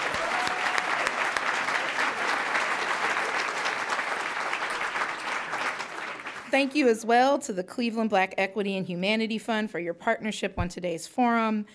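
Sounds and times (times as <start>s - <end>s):
audience applause: 0.0s - 6.5s
speech: 6.5s - 11.7s.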